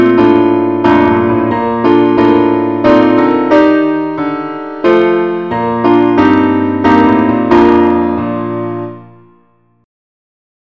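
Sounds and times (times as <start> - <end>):
keyboard playing only the key B flat: 0.0 - 8.2.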